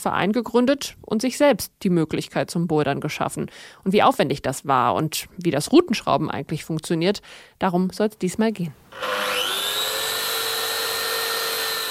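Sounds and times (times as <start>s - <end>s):
speech: 0.0s - 9.6s
circular saw cutting a wooden board: 8.9s - 11.8s.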